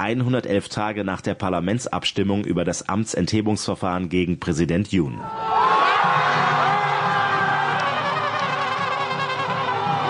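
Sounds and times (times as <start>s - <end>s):
speech: 0.0s - 5.6s
crowd cheering and jubilation: 5.3s - 10.0s.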